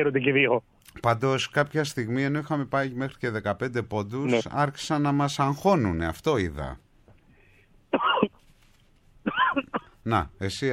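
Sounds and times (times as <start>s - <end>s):
speech: 0.0s - 6.8s, 9.2s - 10.7s
throat-clearing cough: 7.9s - 8.4s, 9.2s - 10.0s.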